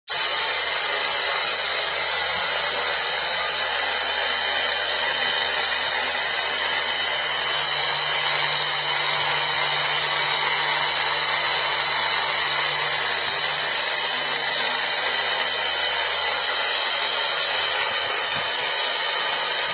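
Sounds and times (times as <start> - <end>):
polishing machine: 0.1 - 19.7.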